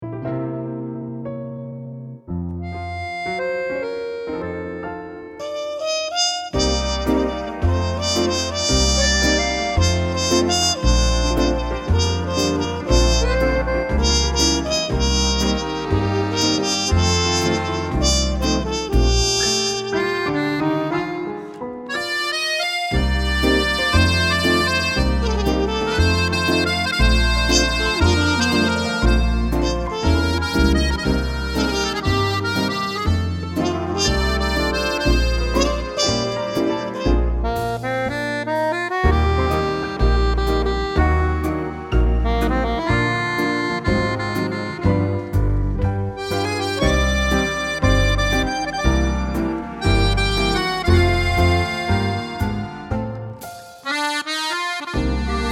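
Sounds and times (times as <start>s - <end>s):
accordion: 2.5s - 55.5s
trumpet: 2.6s - 55.5s.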